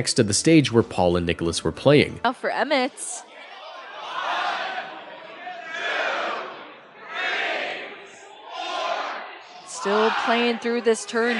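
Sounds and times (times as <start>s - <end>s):
speech: 0.0s - 3.3s, 9.8s - 11.3s
murmur of voices: 2.7s - 11.3s
crowd excitedly chanting counting aloud in unison: 3.2s - 11.3s.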